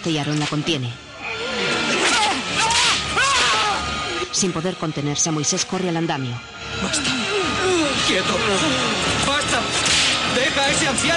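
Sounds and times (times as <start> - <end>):
speech: 0.0 - 1.1, 4.3 - 7.2, 8.1 - 9.1, 10.4 - 11.1
pained cries: 1.1 - 4.2, 6.9 - 9.0
whip-like lashes of a guard striking an old slave: 1.9 - 3.5.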